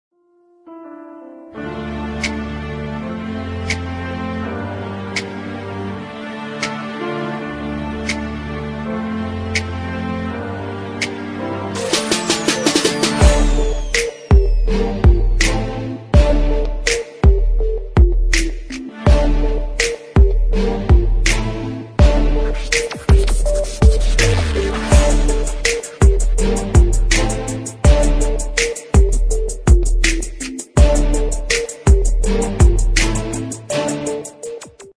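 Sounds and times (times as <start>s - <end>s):
freestyle beat instrumental: 8.0s - 8.4s, 11.0s - 34.9s.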